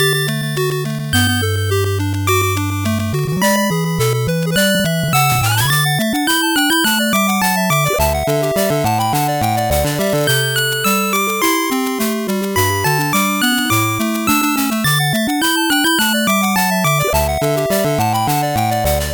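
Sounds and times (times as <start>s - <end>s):
fast 8-bit background music: 0.1s - 19.1s.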